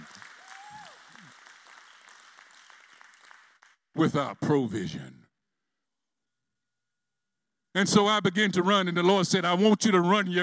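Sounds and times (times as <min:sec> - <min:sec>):
audience clapping: 0:00.0 - 0:04.1
rising whistle or whoop: 0:00.4 - 0:01.3
speech: 0:04.0 - 0:05.2, 0:07.8 - 0:10.4.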